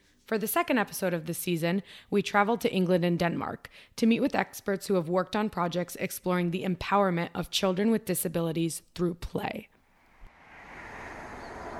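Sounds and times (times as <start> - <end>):
speech: 0.3 - 9.8
train approaching a station platform: 10.3 - 11.7.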